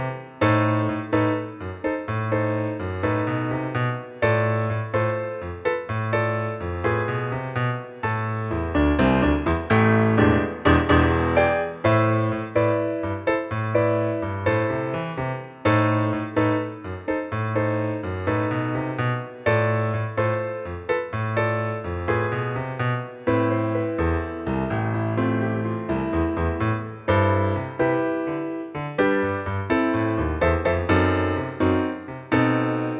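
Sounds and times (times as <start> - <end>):
bass: 0.0 - 32.9.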